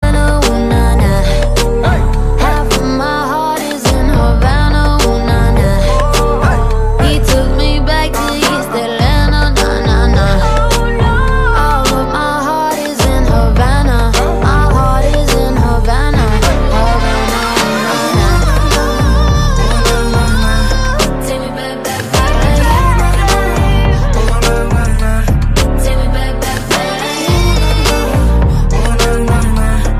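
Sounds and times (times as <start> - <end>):
remix music: 0.0 - 29.9.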